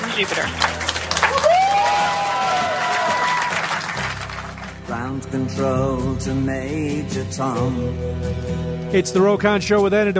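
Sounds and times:
crowd cheering and clapping in NASA Mission Control: 0.0 - 5.0
speech: 0.2 - 0.8, 5.0 - 10.1.

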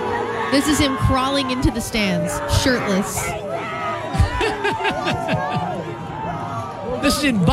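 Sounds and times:
stadium crowd cheering wildly: 0.0 - 7.5
speech: 0.5 - 3.4, 4.8 - 5.6, 7.0 - 7.5
laughter: 4.0 - 6.1.

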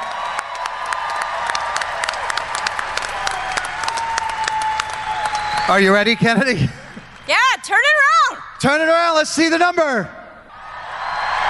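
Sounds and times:
audience applause: 0.0 - 7.4
crowd cheering: 0.0 - 8.4, 10.5 - 11.4
speech: 5.7 - 10.2.

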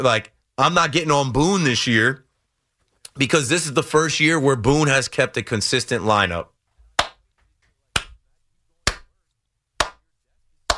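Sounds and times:
speech: 0.0 - 2.2, 3.2 - 6.5
hands clapping: 6.9 - 8.2, 8.8 - 10.7.

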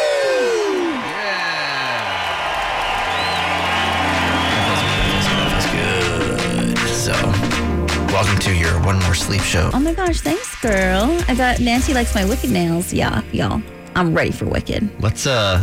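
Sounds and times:
group of people cheering and whooping: 0.0 - 7.5
speech: 8.2 - 15.6.

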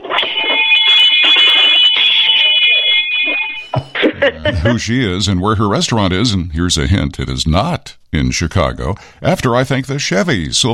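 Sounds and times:
bell ringing: 0.0 - 5.2
laughter: 3.6 - 5.7
speech: 4.5 - 10.7.

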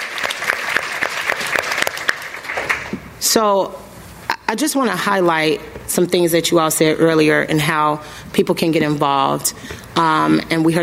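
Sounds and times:
audience clapping at a City Club discussion event: 0.0 - 3.0
speech: 3.2 - 3.8, 4.5 - 10.8.

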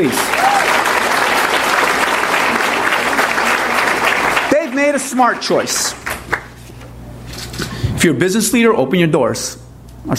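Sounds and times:
speech: 0.0 - 0.6, 5.0 - 6.1, 8.0 - 10.1
audience applause: 0.0 - 6.6.

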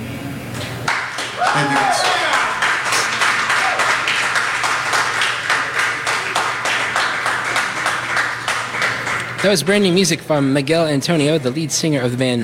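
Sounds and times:
live audience applause: 0.9 - 10.0
speech: 9.4 - 12.4.

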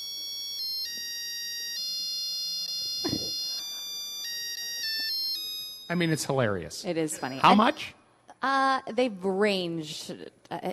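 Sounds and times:
egg boiler electronic signal melody for hard-boiled eggs: 0.0 - 6.0
speech: 5.9 - 10.7.

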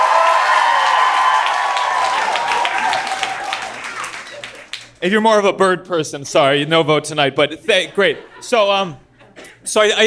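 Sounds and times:
audience applause and cheering: 0.0 - 5.0
speech: 5.0 - 10.0
laughter: 7.6 - 9.6.

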